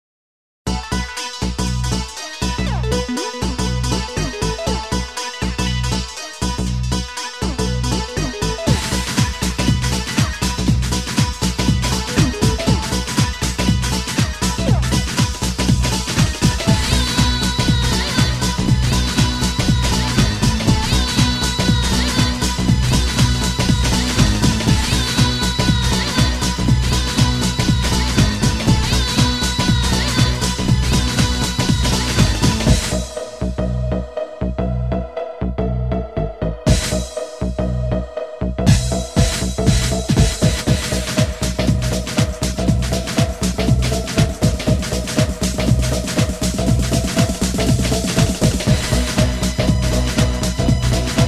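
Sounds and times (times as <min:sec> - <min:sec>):
ethnic trance music: 0:00.7 - 0:51.2.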